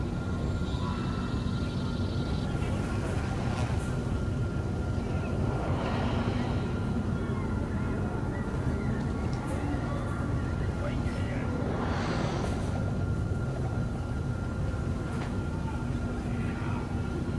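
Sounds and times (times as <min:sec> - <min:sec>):
market ambience: 0:00.0 - 0:17.3.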